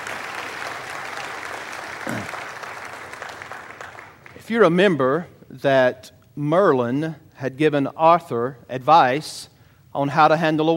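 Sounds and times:
audience applause: 0.0s - 4.4s
speech: 4.5s - 10.7s.

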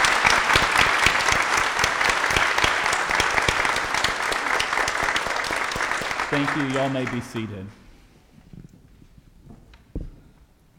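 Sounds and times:
audience applause: 0.0s - 7.8s
speech: 6.4s - 7.8s.

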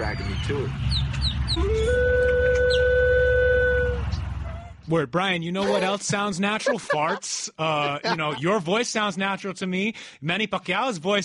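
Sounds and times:
speech: 0.2s - 1.0s, 1.6s - 2.0s, 4.9s - 11.2s
flute playing: 1.6s - 4.1s
laughter: 5.6s - 8.6s.

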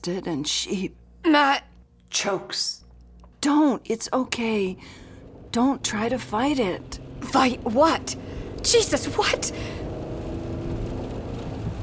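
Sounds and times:
speech: 0.0s - 2.8s, 3.4s - 9.8s
car engine droning: 4.0s - 11.8s.

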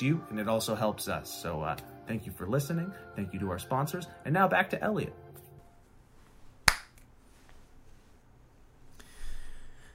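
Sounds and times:
speech: 0.0s - 5.2s
hand clapping: 6.6s - 7.1s.

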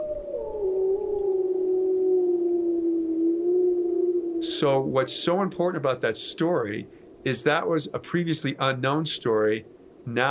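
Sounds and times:
wolf howling: 0.0s - 5.4s
speech: 4.5s - 10.2s.

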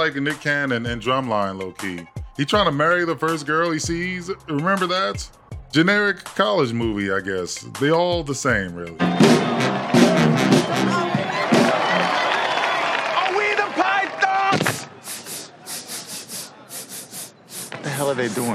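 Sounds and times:
speech: 0.0s - 11.0s, 18.1s - 18.5s
step team stomping: 9.0s - 14.9s
crowd clapping and cheering: 9.0s - 15.1s.

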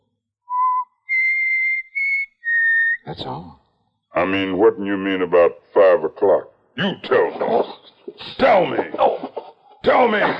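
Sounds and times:
person whistling clear pure notes: 0.5s - 3.0s
speech: 3.1s - 9.2s, 9.8s - 10.3s
laughter: 7.0s - 10.3s.

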